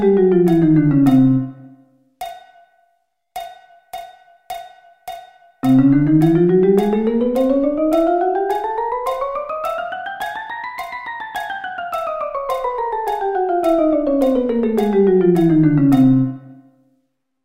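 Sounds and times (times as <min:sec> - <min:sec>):
chromatic scale: 0:00.0 - 0:01.8, 0:05.6 - 0:16.7.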